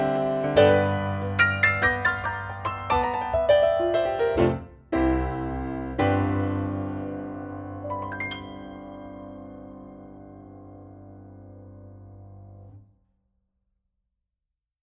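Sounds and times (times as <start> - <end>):
piano: 0.0 - 13.2.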